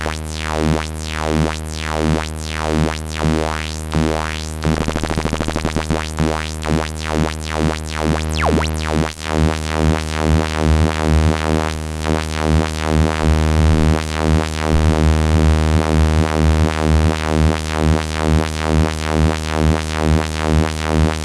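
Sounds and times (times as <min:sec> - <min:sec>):
synthesizer with LFO pulse width and filter modulation: 0:00.2 - 0:21.2.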